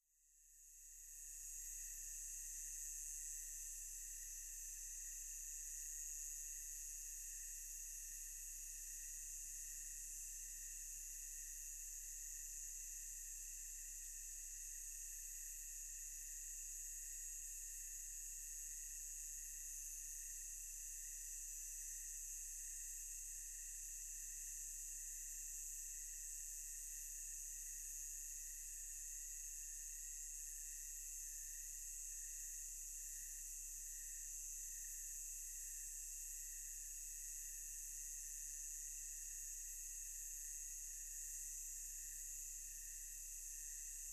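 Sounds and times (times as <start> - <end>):
multiple cicadas: 0.4 - 44.1
crickets chirping: 0.9 - 44.1.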